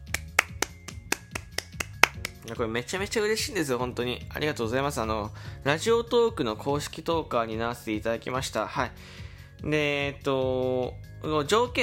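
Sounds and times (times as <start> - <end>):
hand clapping: 0.0 - 2.5
speech: 2.5 - 11.8.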